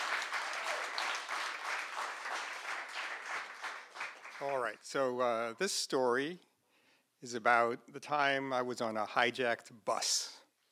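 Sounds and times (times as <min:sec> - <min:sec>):
audience applause: 0:00.0 - 0:04.7
speech: 0:04.4 - 0:06.5, 0:07.2 - 0:10.3.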